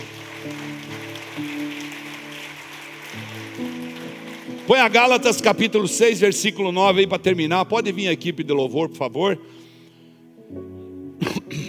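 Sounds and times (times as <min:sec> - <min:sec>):
audience applause: 0:00.0 - 0:06.3
speech: 0:04.7 - 0:09.6.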